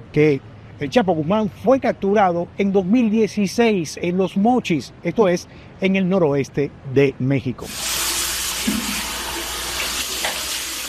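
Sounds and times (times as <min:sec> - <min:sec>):
speech: 0:00.1 - 0:08.0
water running from a sink tap as a man washes his face: 0:07.7 - 0:10.8.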